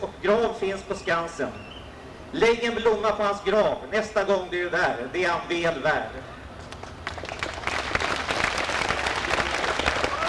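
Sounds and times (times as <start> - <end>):
speech: 0.2 - 1.7, 2.3 - 6.4
applause: 7.0 - 10.2.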